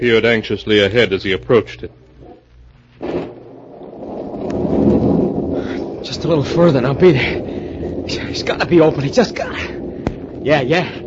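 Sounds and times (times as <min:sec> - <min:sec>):
speech: 0:00.0 - 0:02.0, 0:06.0 - 0:07.5, 0:08.1 - 0:09.8, 0:10.4 - 0:11.0
heavy rainstorm: 0:03.3 - 0:11.0.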